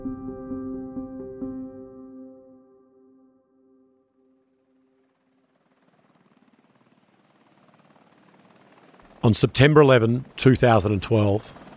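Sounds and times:
helicopter flying overhead with tonal engine hum: 0:04.5 - 0:11.7
speech: 0:09.3 - 0:11.6.

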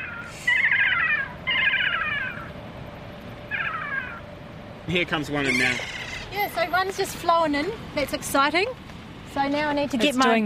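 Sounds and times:
kea calls: 0:00.0 - 0:02.5, 0:03.5 - 0:04.2, 0:05.4 - 0:06.4
speech: 0:04.9 - 0:10.4.

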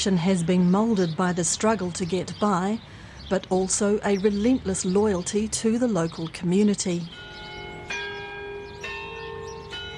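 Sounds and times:
speech: 0:00.0 - 0:07.3
town clock bell striking the hour: 0:07.1 - 0:09.9.

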